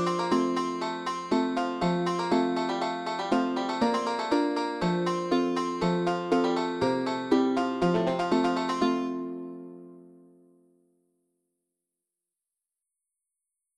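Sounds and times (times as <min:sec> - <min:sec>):
banjo player playing: 0:00.0 - 0:10.1.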